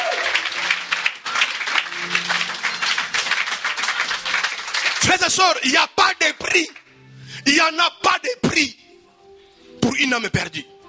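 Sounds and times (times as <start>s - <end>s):
church congregation applauding in praise: 0.0s - 6.9s
speech: 5.2s - 6.8s, 7.4s - 8.8s, 10.0s - 10.7s.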